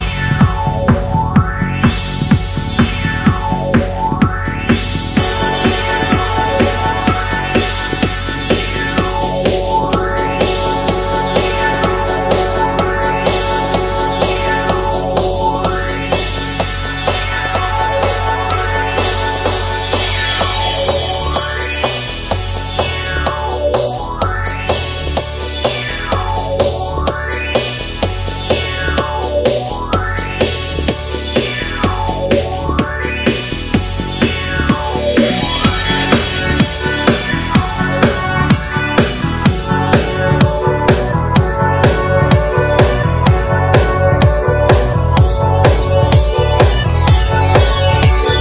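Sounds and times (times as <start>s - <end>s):
original extended instrumental mix disco: 0.0s - 48.4s.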